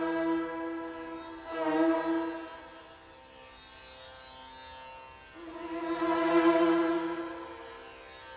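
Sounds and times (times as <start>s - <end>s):
instrumental music: 0.0s - 3.1s, 5.3s - 8.1s.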